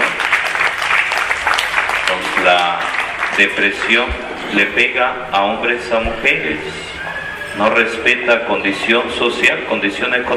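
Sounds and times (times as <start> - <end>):
audience applause: 0.0 - 4.1
speech: 3.4 - 6.9, 7.6 - 10.3.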